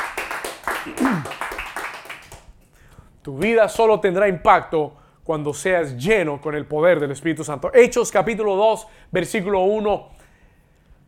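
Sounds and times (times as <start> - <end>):
audience hand clapping: 0.0 - 2.5
speech: 0.8 - 1.5, 3.2 - 10.2.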